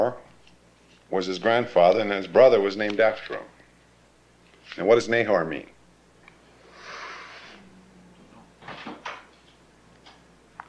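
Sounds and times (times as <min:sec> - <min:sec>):
speech: 0:00.0 - 0:00.2, 0:01.1 - 0:03.5, 0:04.7 - 0:05.8
person imitating snoring: 0:06.8 - 0:08.4.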